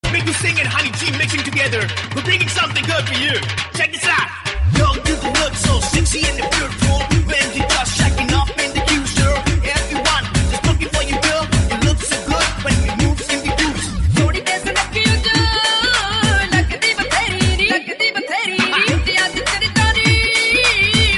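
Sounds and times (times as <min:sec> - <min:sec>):
Punjabi dhol drum beat: 0:00.0 - 0:17.7, 0:18.6 - 0:21.1.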